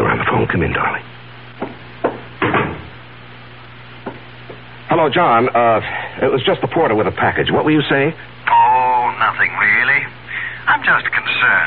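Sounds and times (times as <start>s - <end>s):
low steady hum: 0.0s - 11.6s
speech: 0.5s - 1.1s, 5.0s - 8.6s, 10.8s - 11.6s
knocking on a door: 1.6s - 2.9s.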